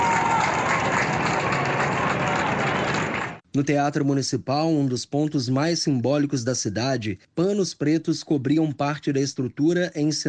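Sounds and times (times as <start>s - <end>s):
crowd applauding outdoors at the door of a city hall: 0.0s - 3.4s
speech: 3.6s - 10.2s.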